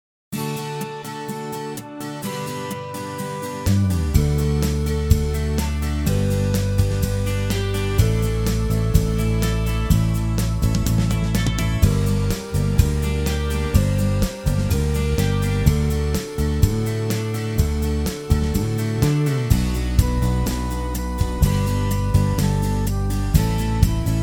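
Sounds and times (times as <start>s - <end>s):
song with verse backing track: 0.4s - 24.2s.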